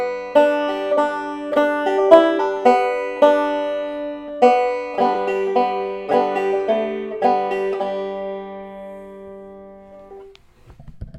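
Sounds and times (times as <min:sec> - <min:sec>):
banjo tune: 0:00.0 - 0:10.4.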